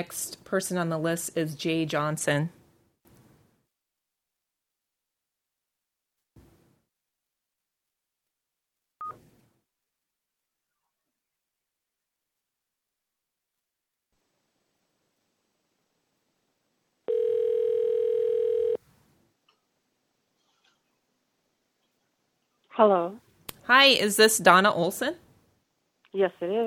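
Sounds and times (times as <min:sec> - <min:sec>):
speech: 0:00.0 - 0:02.6, 0:22.8 - 0:25.2, 0:26.1 - 0:26.6
steady telephone tone on a call: 0:17.1 - 0:18.8.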